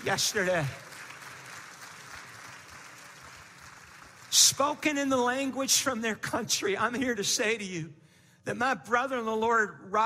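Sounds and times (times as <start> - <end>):
speech: 0.0 - 0.9, 4.4 - 10.0
audience clapping: 0.0 - 5.2.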